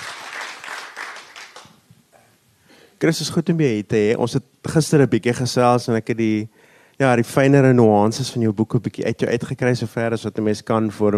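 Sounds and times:
audience applause welcoming a visiting writer: 0.0s - 1.8s
speech: 3.0s - 11.1s.

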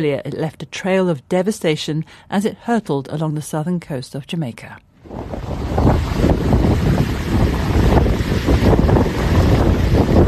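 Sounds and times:
speech: 0.0s - 6.4s
hurricane winds over 230 km/h: 5.0s - 10.2s.

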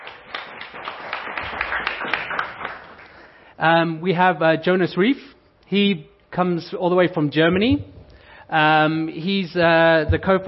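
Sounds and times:
audience applause: 0.0s - 3.2s
speech: 3.6s - 7.9s, 8.5s - 10.4s.

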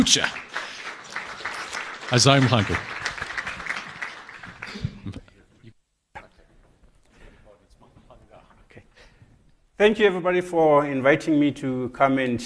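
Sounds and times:
speech: 0.0s - 0.4s, 2.1s - 2.9s, 9.8s - 12.4s
audience round of applause: 0.0s - 5.2s.

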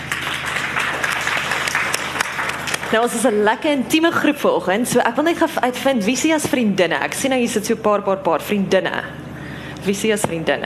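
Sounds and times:
audience applause: 0.0s - 3.0s
speech: 2.9s - 9.2s, 9.8s - 10.6s.

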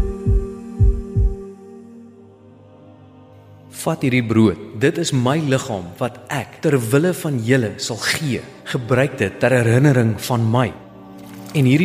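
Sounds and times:
heartbeats: 0.0s - 1.4s
speech: 3.8s - 10.8s, 11.6s - 11.8s.

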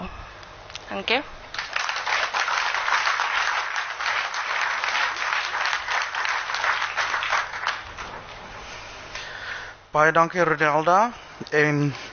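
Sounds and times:
speech: 0.9s - 1.4s, 10.0s - 12.0s
applause: 1.5s - 8.2s.

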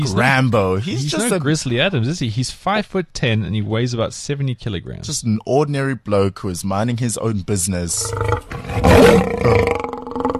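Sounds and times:
speech: 0.0s - 9.8s
mountain lion roaring: 8.0s - 10.3s.

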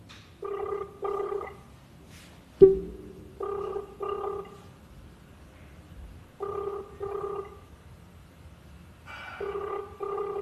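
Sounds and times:
telephone call ringing unanswered: 0.4s - 1.6s, 3.4s - 4.6s, 6.4s - 7.6s, 9.4s - 10.4s.

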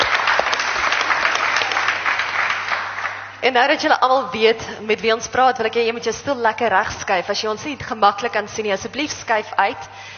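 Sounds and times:
audience applause: 0.0s - 3.4s
speech: 3.4s - 10.1s.

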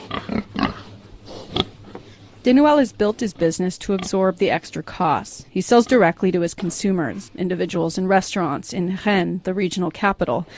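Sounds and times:
pigs grunting: 0.0s - 1.9s
speech: 2.4s - 10.5s.

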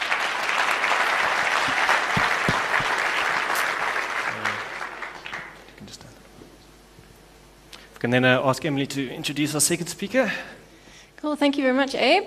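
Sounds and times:
crowd round of applause: 0.0s - 5.7s
speech: 8.0s - 10.6s, 11.2s - 12.2s.

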